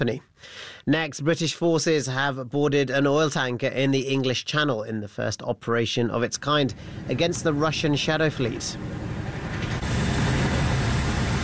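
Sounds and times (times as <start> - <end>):
speech: 0.0 - 9.2
helicopter hovering: 6.7 - 11.4.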